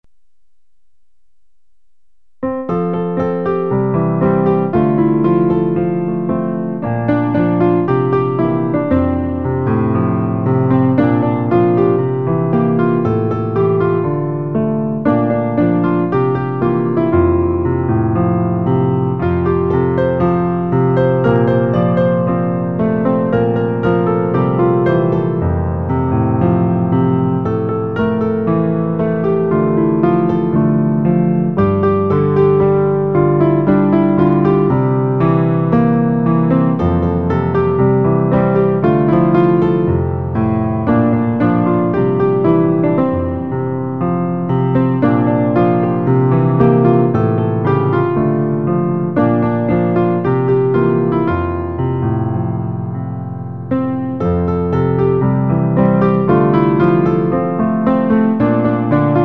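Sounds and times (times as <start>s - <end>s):
piano: 0.0s - 59.2s.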